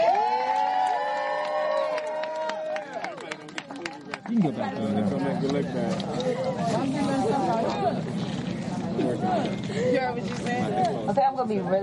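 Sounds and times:
crowd cheering and whooping: 0.0 - 3.4
scattered hand claps: 0.8 - 4.5
speech: 4.3 - 11.8.

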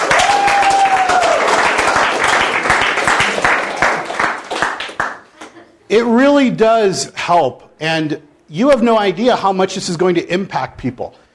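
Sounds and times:
audience clapping: 0.0 - 5.6
speech: 5.9 - 11.2.

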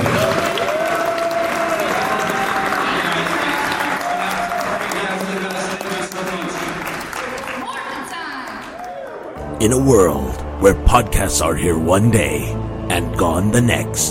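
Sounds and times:
audience round of applause: 0.0 - 9.4
cheering voices: 0.0 - 9.4
speech: 9.6 - 14.1.

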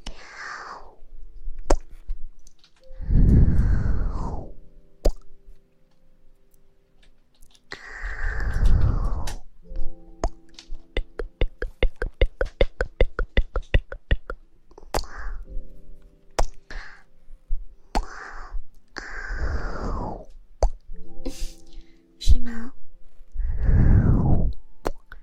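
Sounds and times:
soft breathy blowing in the ear: 2.8 - 4.6, 7.7 - 15.7, 16.6 - 17.2, 17.9 - 20.4, 23.4 - 24.6
wet kissing sounds in the ear: 14.9 - 15.3, 24.8 - 25.2.

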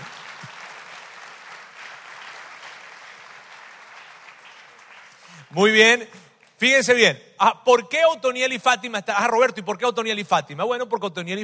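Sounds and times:
audience applause: 0.0 - 5.6
speech: 5.5 - 11.4.

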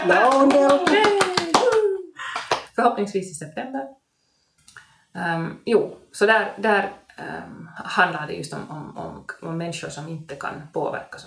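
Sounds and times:
speech: 0.0 - 1.0, 2.8 - 4.0, 5.2 - 11.2
short round of applause with quick steady hand claps: 0.0 - 2.7.

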